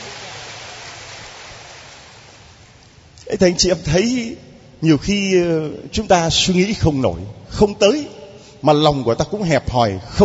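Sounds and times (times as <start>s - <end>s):
audience applause: 0.0s - 2.6s
speech: 3.3s - 10.2s.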